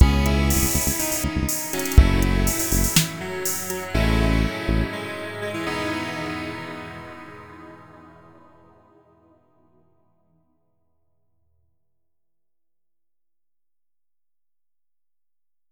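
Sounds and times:
hype electro music: 0.0 - 8.4.

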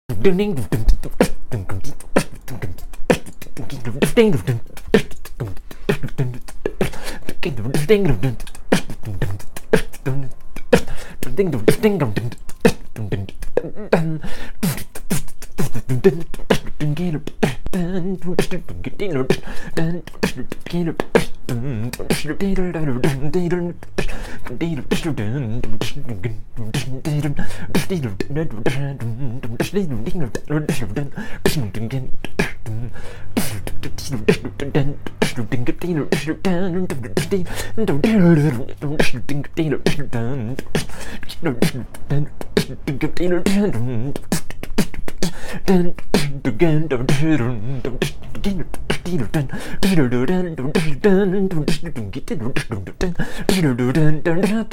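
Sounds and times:
beatboxing: 0.1 - 54.7.

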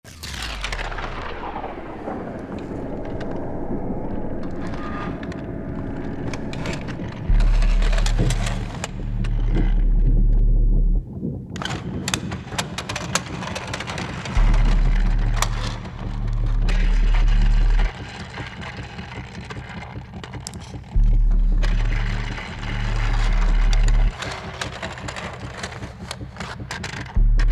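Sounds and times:
instrumental music: 0.2 - 27.4.

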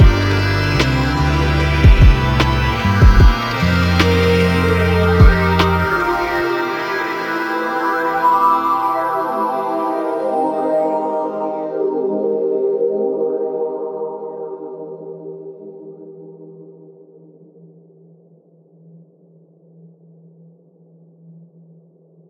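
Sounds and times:
psychedelic lo-fi synth: 0.0 - 17.1.

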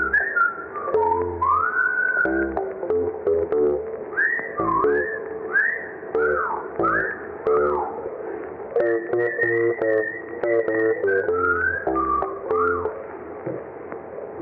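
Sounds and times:
spooky whistle choir: 0.0 - 2.7, 4.1 - 7.9, 8.8 - 13.0
spooky bass: 0.0 - 14.4.

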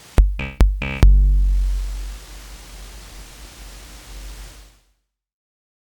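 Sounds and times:
flat bongo hits: 0.2 - 2.8.

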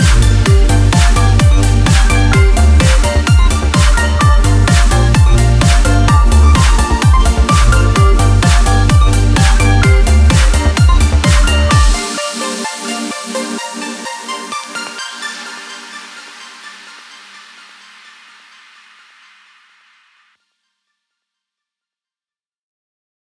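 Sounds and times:
kick drum: 0.0 - 12.1.

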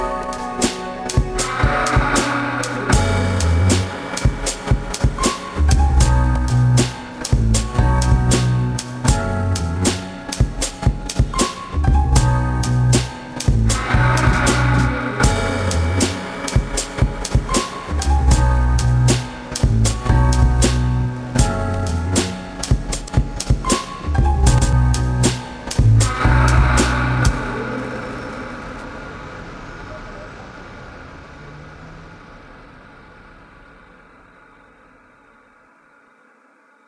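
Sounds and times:
lo-fi hip hop with drunken beats: 0.0 - 28.4.

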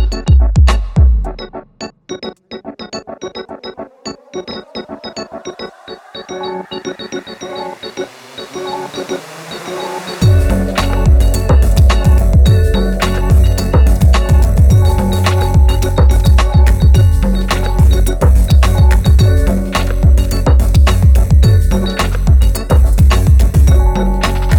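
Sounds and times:
drum break fragment: 0.0 - 1.4, 10.2 - 24.5.

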